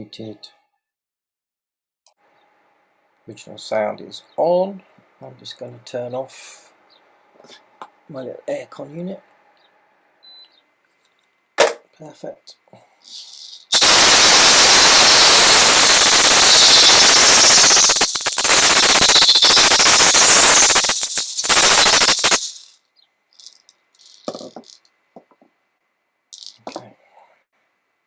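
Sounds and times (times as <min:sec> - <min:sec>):
speech: 0:00.0 - 0:00.6, 0:03.2 - 0:06.7, 0:07.4 - 0:09.3, 0:12.0 - 0:14.9
fire crackling: 0:13.1 - 0:22.8.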